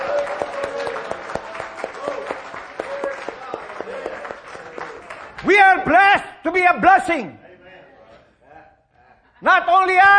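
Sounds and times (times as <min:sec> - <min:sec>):
audience applauding: 0:00.0 - 0:05.5
speech: 0:05.4 - 0:07.4, 0:09.4 - 0:10.1.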